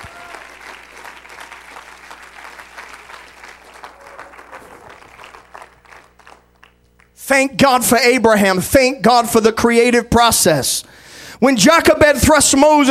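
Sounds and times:
applause, hand clapping: 0.0 - 7.2
speech: 7.3 - 12.9.

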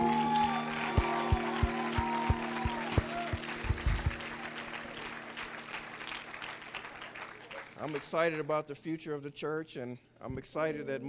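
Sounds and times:
children clapping hands: 0.0 - 8.0
speech: 7.9 - 11.0.

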